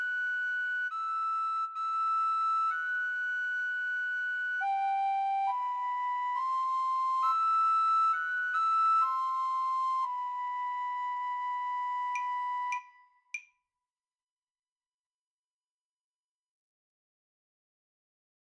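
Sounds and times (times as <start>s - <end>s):
solo recorder: 0.0s - 13.1s.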